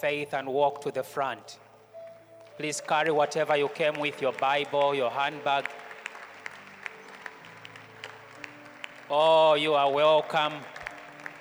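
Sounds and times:
speech: 0:00.0 - 0:01.6, 0:02.6 - 0:05.8, 0:09.1 - 0:10.8
audience clapping: 0:02.4 - 0:11.3.

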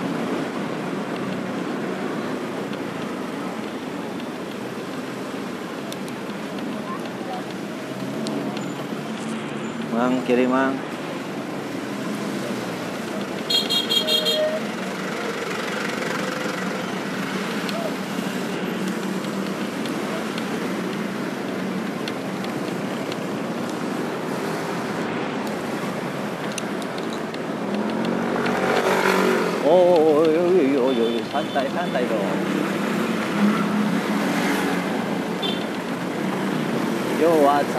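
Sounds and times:
rumble of idling and creeping traffic: 0:00.0 - 0:37.7
speech: 0:10.0 - 0:10.9
car horns honking: 0:13.4 - 0:14.7.

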